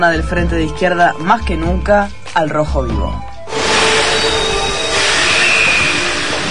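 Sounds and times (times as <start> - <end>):
speech: 0.0 - 3.3
thin high metallic whines: 3.4 - 6.4
subway train running with a steady rumble: 3.5 - 6.4.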